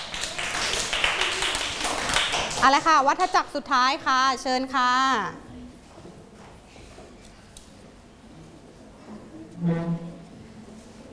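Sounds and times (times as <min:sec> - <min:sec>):
students clapping in a classroom: 0:00.0 - 0:02.8
speech: 0:02.6 - 0:05.4, 0:09.6 - 0:10.1.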